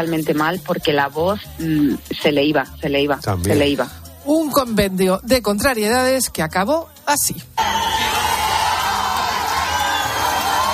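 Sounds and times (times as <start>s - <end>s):
speech: 0.0s - 8.0s
concert crowd booing: 7.6s - 10.7s.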